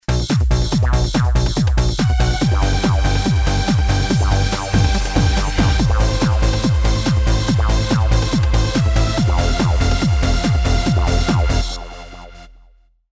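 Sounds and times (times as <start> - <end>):
cheap trance music: 0.0 - 12.6.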